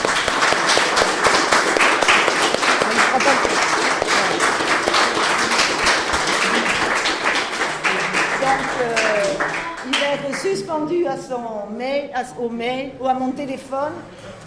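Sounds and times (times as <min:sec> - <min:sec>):
audience applause: 0:00.0 - 0:10.5
speech: 0:10.8 - 0:14.4.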